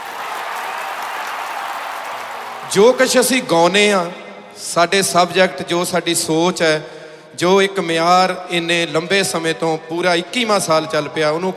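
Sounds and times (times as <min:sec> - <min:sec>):
audience applause at a Punjabi music performance: 0:00.0 - 0:03.2
speech: 0:02.7 - 0:11.5.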